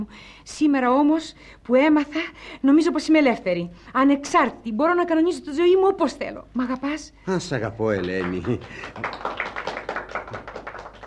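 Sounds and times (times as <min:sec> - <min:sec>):
speech: 0:00.0 - 0:09.6
faint applause: 0:07.8 - 0:11.0.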